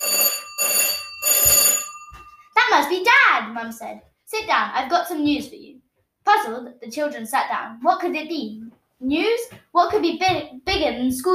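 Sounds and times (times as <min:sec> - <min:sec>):
loud insistent doorbell ringing: 0:00.0 - 0:02.6
speech: 0:02.8 - 0:11.3.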